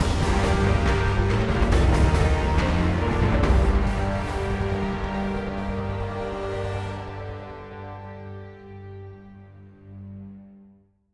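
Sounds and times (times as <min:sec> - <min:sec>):
boss combat game music ending: 0:00.0 - 0:07.0.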